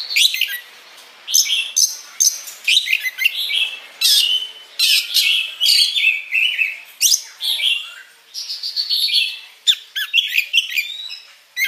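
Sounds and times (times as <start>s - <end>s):
Oriental magpie-robin singing: 0.0s - 0.7s, 1.3s - 11.6s.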